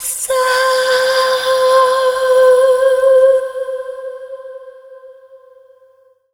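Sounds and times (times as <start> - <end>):
female dance vocals: 0.2 - 4.7.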